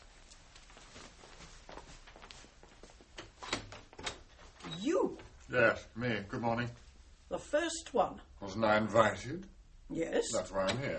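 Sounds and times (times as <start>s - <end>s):
soft footsteps: 0.0s - 7.3s
door opening: 3.2s - 5.3s
speech: 4.8s - 10.9s.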